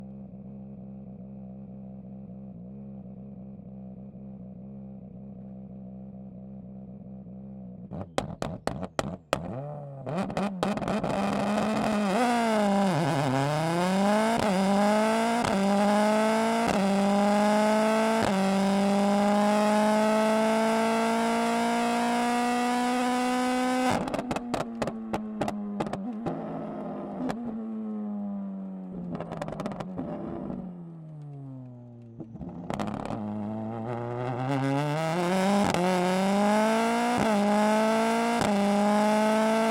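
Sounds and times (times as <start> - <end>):
Ford Puma Hybrid Rally1 2022 WRC car exhaust onboard driving and launch control: 0.0 - 39.6.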